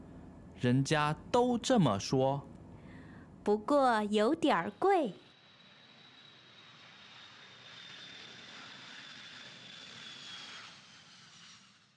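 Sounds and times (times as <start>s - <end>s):
voice: 0.6s - 2.5s, 3.5s - 5.2s
airplane engine drone while landing: 4.6s - 11.9s.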